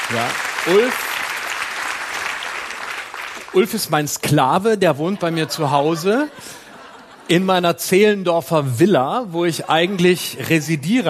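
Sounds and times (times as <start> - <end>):
audience applause: 0.0 - 4.1
speech: 0.1 - 1.1, 3.5 - 6.6, 7.3 - 11.0
laughter: 4.6 - 8.1, 9.0 - 11.0.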